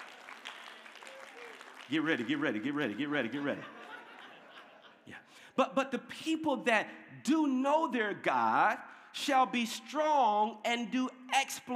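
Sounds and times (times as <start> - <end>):
audience clapping: 0.0 - 4.4
speech: 1.9 - 3.8, 5.1 - 11.7
laughter: 2.2 - 5.3.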